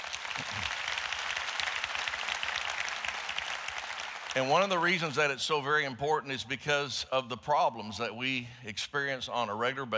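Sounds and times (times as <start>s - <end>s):
crowd applause: 0.0s - 5.4s
speech: 4.4s - 9.9s.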